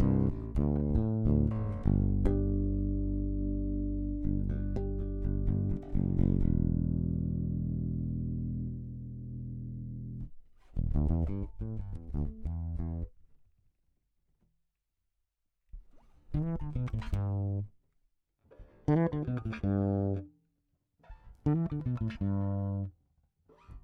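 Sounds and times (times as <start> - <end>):
bass through magnetic and piezo pickups: 0.0 - 13.2, 15.8 - 17.8, 18.8 - 20.4, 21.1 - 23.0.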